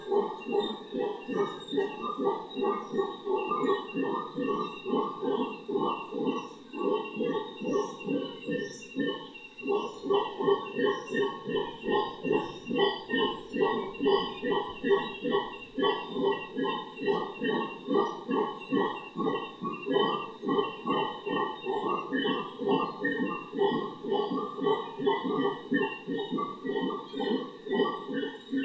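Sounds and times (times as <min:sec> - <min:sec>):
howler monkeys howling: 0:00.0 - 0:28.6.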